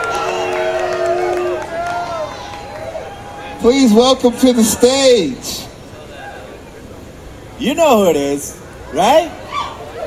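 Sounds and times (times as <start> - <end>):
festival crowd cheering on a Friday night: 0.0 - 5.4
speech: 3.6 - 5.7, 7.6 - 9.4.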